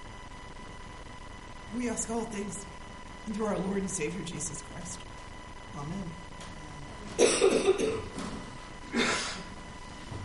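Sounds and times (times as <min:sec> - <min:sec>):
speech: 0:01.7 - 0:05.1, 0:05.8 - 0:06.2, 0:07.6 - 0:08.2
person coughing from allergies: 0:07.2 - 0:08.2, 0:08.9 - 0:09.5.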